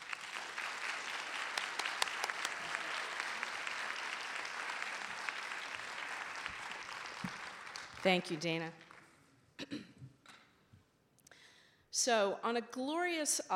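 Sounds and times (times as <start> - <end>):
audience applause welcoming a speaker and author: 0.0 - 8.3
speech: 8.0 - 8.8, 12.0 - 13.5.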